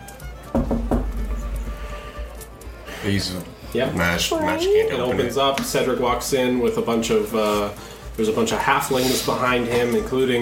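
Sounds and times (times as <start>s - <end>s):
knocking on a door: 0.5s - 1.8s
speech: 3.0s - 10.3s.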